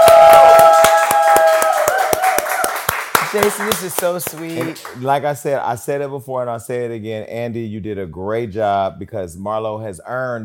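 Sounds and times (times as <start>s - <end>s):
small audience clapping in rhythm: 0.0s - 5.3s
speech: 3.4s - 10.4s.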